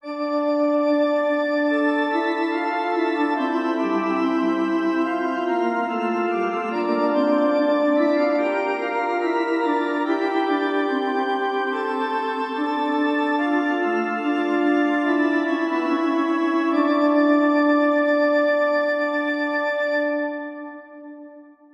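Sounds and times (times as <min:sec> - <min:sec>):
two-voice counterpoint exercises: 0:00.0 - 0:21.7.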